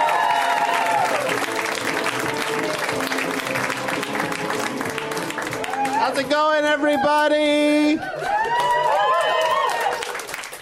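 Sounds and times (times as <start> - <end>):
whoops and cheers: 0.0 - 1.4, 5.6 - 10.4
audience applause for comedian: 0.0 - 10.5
speech: 6.2 - 8.2.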